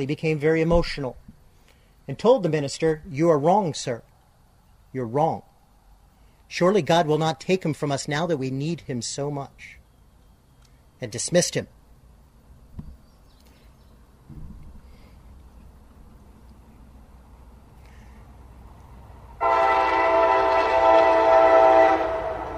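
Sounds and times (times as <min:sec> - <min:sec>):
speech: 0:00.0 - 0:01.3, 0:02.1 - 0:04.1, 0:04.9 - 0:05.5, 0:06.5 - 0:09.8, 0:11.0 - 0:11.8
train with two engines rumbling: 0:14.2 - 0:22.5
loud multi-toned train horn blaring: 0:19.4 - 0:22.5.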